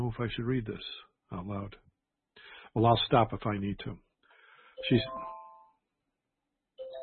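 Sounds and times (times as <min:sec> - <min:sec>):
speech: 0:00.1 - 0:01.9, 0:02.7 - 0:04.1, 0:04.8 - 0:05.3
alarm electronic chime bursts: 0:04.8 - 0:05.7.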